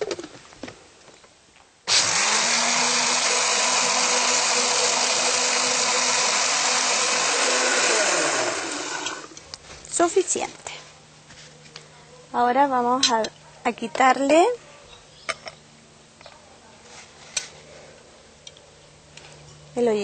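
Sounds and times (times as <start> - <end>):
blender blending: 1.9 - 9.4
speech: 10.0 - 10.8, 12.3 - 14.6, 19.8 - 20.0.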